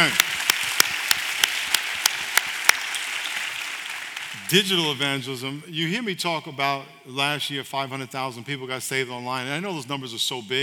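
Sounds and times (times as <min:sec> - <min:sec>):
speech: 0:00.0 - 0:00.3, 0:04.5 - 0:10.6
crowd clapping: 0:00.0 - 0:05.2.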